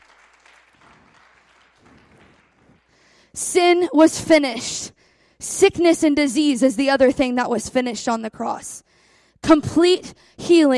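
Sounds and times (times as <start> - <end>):
audience clapping: 0.0 - 3.2
speech: 3.4 - 10.7.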